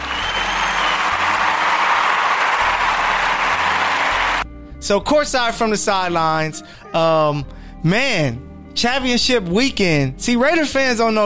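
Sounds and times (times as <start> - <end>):
hand claps: 0.0 - 4.4
speech: 4.9 - 11.2.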